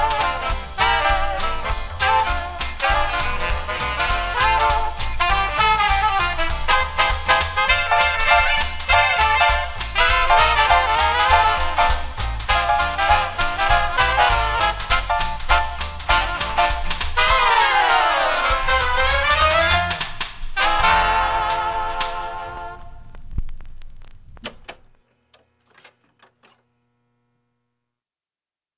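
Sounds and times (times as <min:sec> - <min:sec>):
jukebox song: 0:00.0 - 0:23.0.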